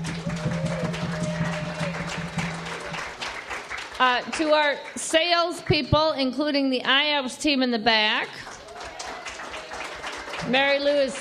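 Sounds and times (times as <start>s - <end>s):
audience applause: 0.0s - 5.0s, 8.4s - 11.2s
speech: 4.0s - 8.4s, 10.4s - 11.2s.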